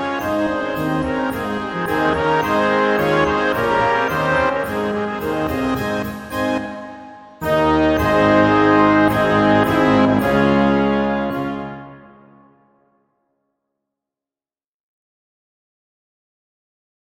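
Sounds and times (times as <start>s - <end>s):
brewery march music: 0.0s - 12.9s.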